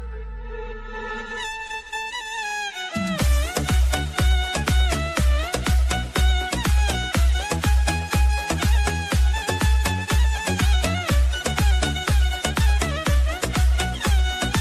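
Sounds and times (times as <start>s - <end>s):
Arabic remix music: 0.0s - 14.5s.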